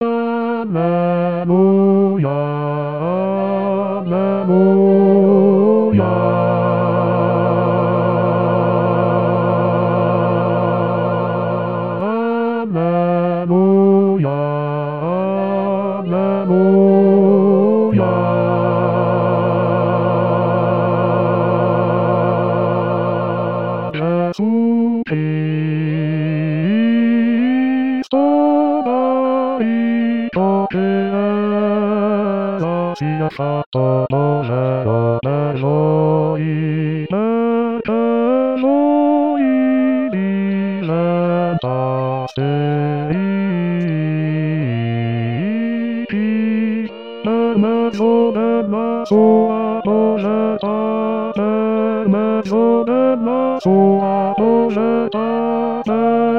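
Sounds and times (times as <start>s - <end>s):
bass voices singing a Gospel acclamation: 0.0s - 56.3s.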